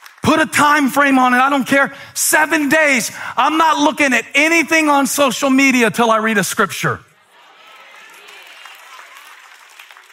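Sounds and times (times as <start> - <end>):
speech: 0.4 - 7.1
audience applause: 7.3 - 10.1.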